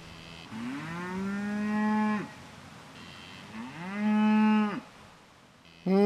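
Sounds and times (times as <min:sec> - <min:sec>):
cattle mooing: 0:00.1 - 0:02.3, 0:03.0 - 0:04.9.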